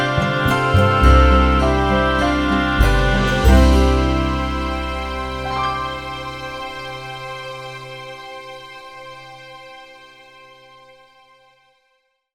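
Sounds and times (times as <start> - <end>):
oboe: 0.0 - 8.6.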